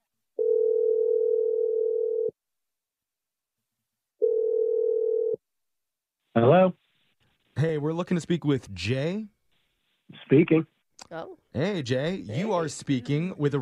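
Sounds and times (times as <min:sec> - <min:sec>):
telephone ringback tone: 0:00.4 - 0:02.3, 0:04.2 - 0:05.4
speech: 0:08.0 - 0:09.4, 0:10.3 - 0:13.5.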